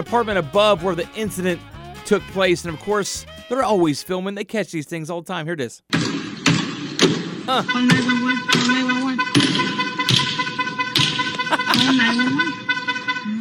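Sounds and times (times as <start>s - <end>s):
speech: 0.0s - 6.0s, 7.5s - 9.0s, 11.8s - 12.6s
hammer striking a self-driving car: 5.9s - 12.1s
laughter: 11.4s - 12.5s.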